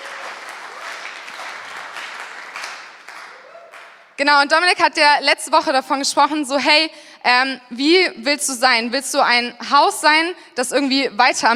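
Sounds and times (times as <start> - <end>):
applause: 0.0 - 4.2
speech: 4.2 - 11.5.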